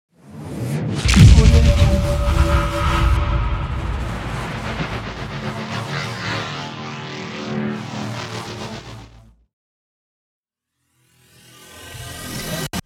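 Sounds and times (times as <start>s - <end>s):
cinematic whoosh: 0.3s - 9.0s.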